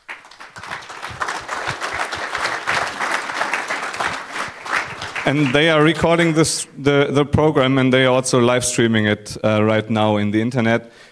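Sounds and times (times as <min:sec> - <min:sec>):
audience applause: 0:00.0 - 0:06.2
speech: 0:05.3 - 0:11.1.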